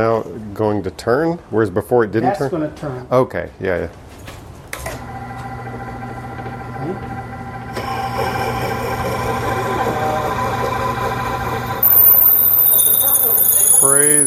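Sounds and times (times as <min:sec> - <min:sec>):
speech: 0:00.0 - 0:04.0
drill boring a hole through the center: 0:05.0 - 0:14.2.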